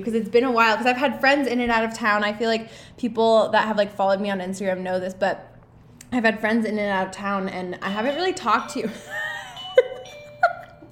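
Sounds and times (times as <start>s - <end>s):
speech: 0.0s - 5.5s, 6.1s - 9.2s
bell rung by a dog pressing a button: 7.8s - 10.9s.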